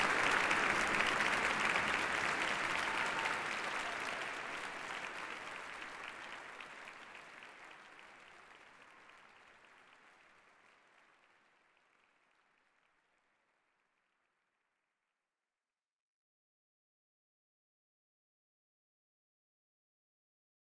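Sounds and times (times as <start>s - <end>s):
applause: 0.0s - 14.6s.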